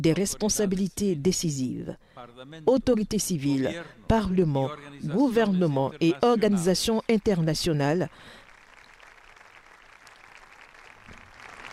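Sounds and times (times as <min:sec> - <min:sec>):
speech: 0:00.0 - 0:08.4
audience applauding a speech: 0:08.2 - 0:11.7.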